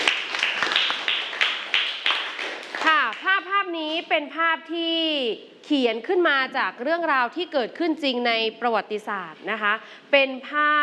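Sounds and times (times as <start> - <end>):
classroom in Thailand clapping for a student: 0.0 - 3.3
speech: 4.0 - 10.8.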